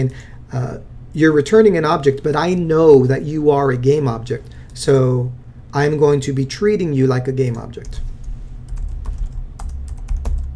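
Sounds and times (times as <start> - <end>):
speech: 0.0 - 8.1
typing code on a computer keyboard: 8.7 - 10.5.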